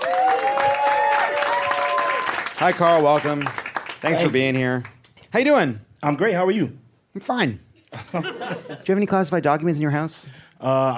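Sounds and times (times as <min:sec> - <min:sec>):
people cheering: 0:00.0 - 0:03.5
studio audience applauding a comedian guest on a talk show: 0:00.0 - 0:05.2
speech: 0:02.6 - 0:10.9
laughter: 0:07.8 - 0:09.1.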